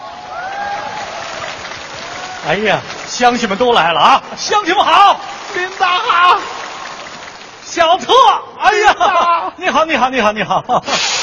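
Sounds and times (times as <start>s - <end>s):
warm applause: 0.0s - 8.4s
speech: 2.4s - 6.5s, 7.7s - 11.1s.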